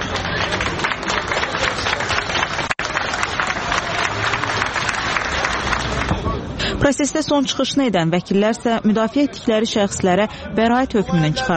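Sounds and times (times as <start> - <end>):
crowd clapping outside a courthouse: 0.0 - 6.4
speech: 6.8 - 11.5.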